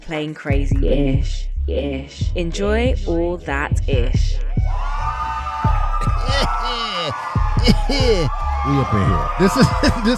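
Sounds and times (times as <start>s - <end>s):
speech: 0.1s - 4.4s, 6.3s - 10.1s
crowd cheering: 4.5s - 10.1s
sharp whoops and rising shouts: 4.5s - 10.1s
laughter: 6.0s - 10.1s.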